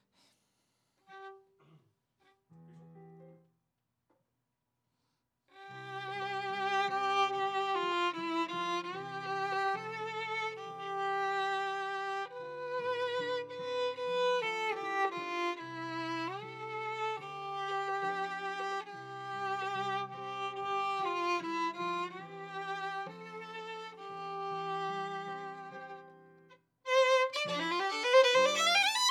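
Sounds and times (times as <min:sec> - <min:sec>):
viola playing D: 0:05.6 - 0:29.0.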